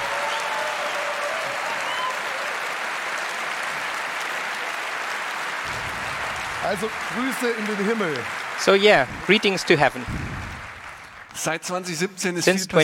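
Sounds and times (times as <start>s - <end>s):
audience clapping: 0.0s - 11.8s
speech: 6.6s - 10.4s, 11.4s - 12.8s.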